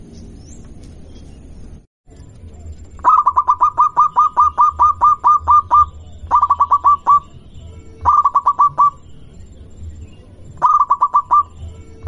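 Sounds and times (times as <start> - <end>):
zebra dove cooing song: 3.0 - 7.4, 8.0 - 9.0, 10.6 - 12.0.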